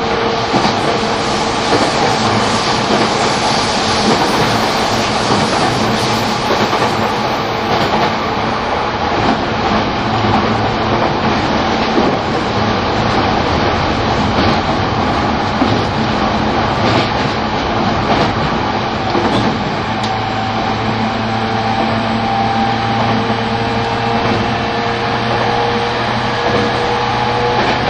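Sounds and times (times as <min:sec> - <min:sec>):
E231 series Shonan-Shinjuku Line train wheels and motors roaring: 0:00.0 - 0:27.8
rhythmic rail clicks: 0:00.1 - 0:20.8, 0:22.8 - 0:27.8
high squeal: 0:02.4 - 0:08.6.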